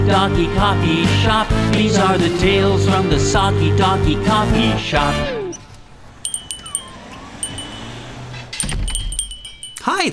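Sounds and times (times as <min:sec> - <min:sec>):
speech: 0:00.1 - 0:05.4
shop door bell jingling: 0:06.2 - 0:10.1.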